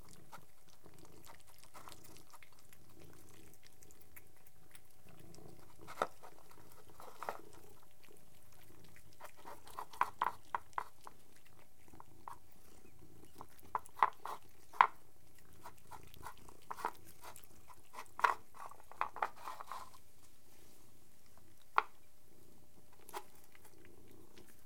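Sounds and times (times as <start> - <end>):
three domestic cats purring while eating: 0.0 - 24.6.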